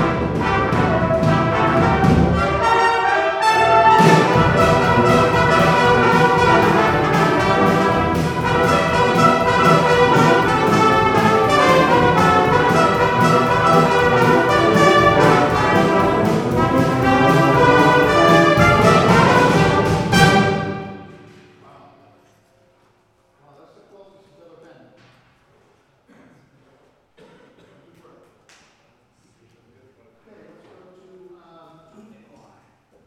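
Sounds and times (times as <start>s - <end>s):
brass cantina music: 0.0s - 21.7s.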